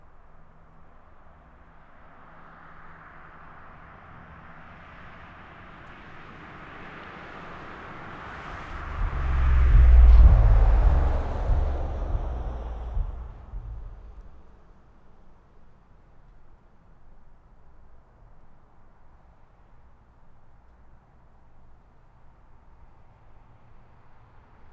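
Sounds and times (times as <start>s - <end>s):
car passing by outdoors: 6.4s - 14.4s.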